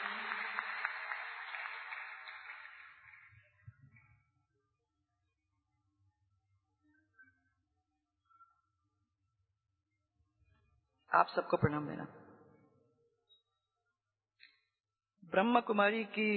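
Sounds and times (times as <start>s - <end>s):
audience applause: 0.0s - 3.4s
speech: 11.1s - 12.2s, 15.3s - 16.3s.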